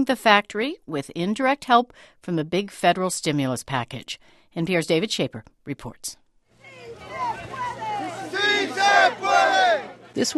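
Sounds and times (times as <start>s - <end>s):
speech: 0.0s - 6.2s, 10.2s - 10.3s
protesting workers chanting outside factory: 6.6s - 10.3s.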